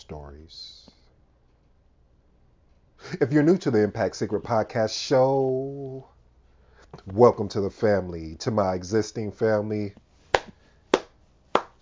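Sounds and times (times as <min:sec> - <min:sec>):
speech: 0:00.1 - 0:00.8, 0:03.0 - 0:06.1, 0:06.9 - 0:10.0
hand claps: 0:10.4 - 0:11.8.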